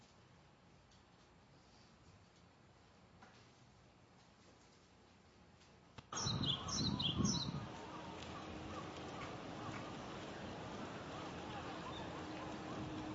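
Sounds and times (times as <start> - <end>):
low noise: 0.0 - 13.1
Japanese tit (shijukara) chirping: 6.1 - 13.0.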